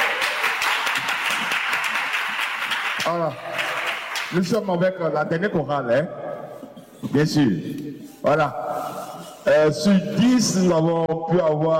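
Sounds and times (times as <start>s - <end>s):
audience applauding a choir at a choral concert: 0.0s - 4.5s
speech: 3.1s - 3.5s, 4.3s - 6.2s, 7.0s - 8.6s, 9.4s - 11.7s.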